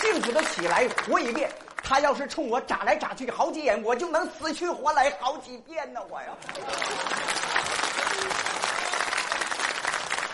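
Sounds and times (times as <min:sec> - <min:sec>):
audience applause: 0:00.0 - 0:01.8, 0:06.4 - 0:10.3
speech: 0:00.1 - 0:08.6.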